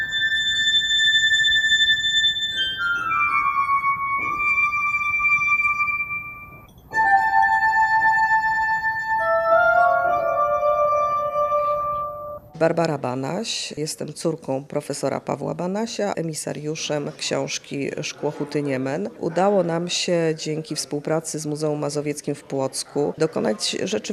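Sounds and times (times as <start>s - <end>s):
glass harp music: 0.0s - 12.5s
speech: 12.6s - 24.1s.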